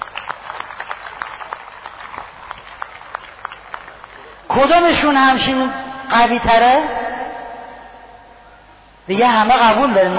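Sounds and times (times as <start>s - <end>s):
audience applause: 0.0s - 4.4s
speech: 4.6s - 7.0s, 9.1s - 10.1s.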